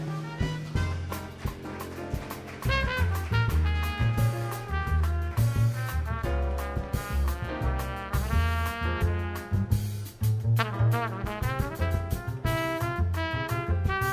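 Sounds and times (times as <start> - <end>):
acoustic quartet: 0.2 - 14.0.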